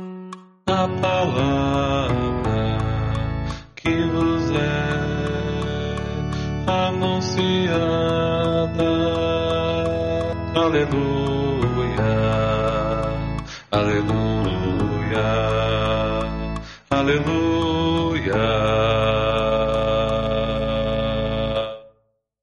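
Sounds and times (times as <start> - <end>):
bass guitar: 0.8 - 7.0, 7.7 - 21.6.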